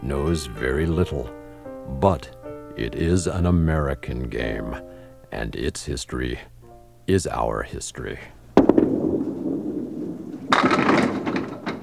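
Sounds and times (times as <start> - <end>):
speech: 0.1 - 6.5, 7.1 - 8.4
candlepin bowling ball knocking down pins: 8.6 - 11.8.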